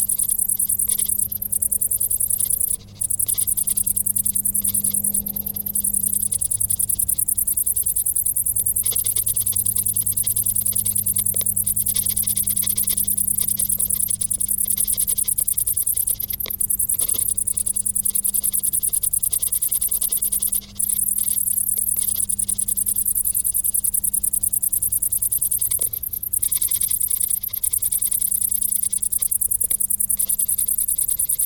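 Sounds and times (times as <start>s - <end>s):
crickets trilling: 0.0s - 31.4s
low steady hum: 1.0s - 23.2s.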